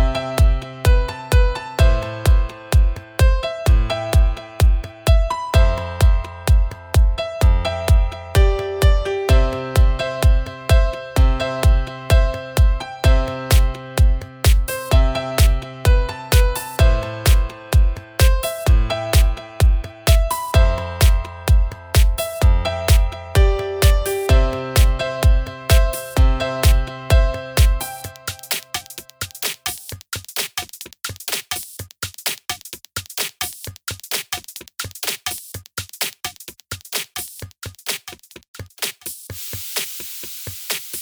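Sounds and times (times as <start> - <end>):
piano: 0.0 - 30.0.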